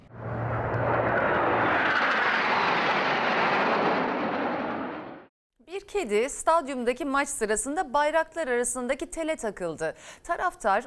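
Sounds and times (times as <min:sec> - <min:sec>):
jet aircraft roaring past at an air show: 0:00.0 - 0:05.3
low hum: 0:00.0 - 0:05.3
speech: 0:05.9 - 0:10.8.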